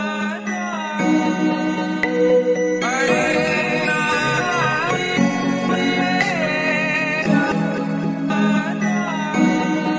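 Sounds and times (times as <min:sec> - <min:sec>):
instrumental music: 0:00.0 - 0:09.9.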